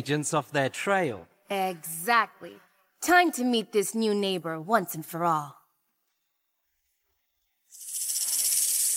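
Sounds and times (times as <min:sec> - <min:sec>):
speech: 0:00.0 - 0:05.6
burrowing owl rattlesnake-like hiss: 0:07.7 - 0:08.9.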